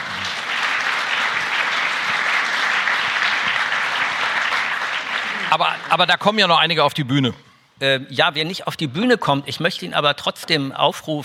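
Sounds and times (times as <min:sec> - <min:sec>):
applause: 0:00.0 - 0:06.2
speech: 0:05.5 - 0:11.2.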